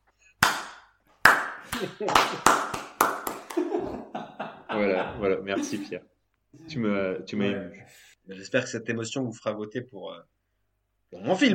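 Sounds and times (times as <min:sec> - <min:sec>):
slow clapping speeding up: 0:00.4 - 0:03.9
laughter: 0:01.6 - 0:02.7, 0:03.4 - 0:06.0
speech: 0:01.8 - 0:02.8, 0:04.8 - 0:10.4, 0:11.1 - 0:11.5.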